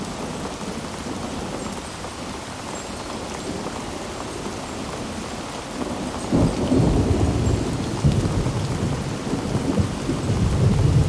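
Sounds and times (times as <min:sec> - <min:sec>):
steady rain: 0:00.0 - 0:11.0.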